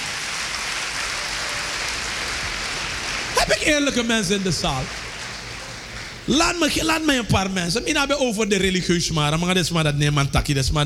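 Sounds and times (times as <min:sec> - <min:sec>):
audience applause: 0:00.0 - 0:07.1
speech: 0:03.4 - 0:05.1, 0:06.3 - 0:10.8.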